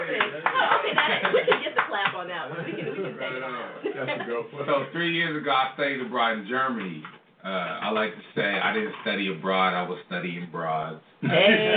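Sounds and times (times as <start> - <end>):
clapping sound effect: 0.0 - 2.4
laughter: 0.0 - 5.1, 11.2 - 11.7
speech: 2.2 - 11.7.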